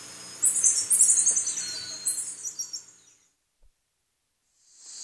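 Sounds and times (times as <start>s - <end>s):
black-mantled tamarin calling in South American rainforest: 0.2s - 3.0s.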